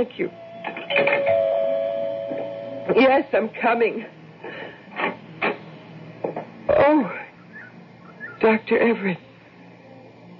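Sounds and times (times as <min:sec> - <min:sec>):
speech: 0:00.0 - 0:01.3, 0:02.9 - 0:04.2, 0:06.7 - 0:07.2, 0:08.4 - 0:09.2
doorbell ringing: 0:00.9 - 0:02.9.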